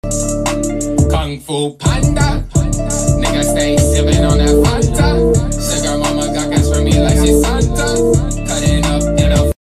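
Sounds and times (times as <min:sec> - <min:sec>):
rap music: 0:00.0 - 0:09.5.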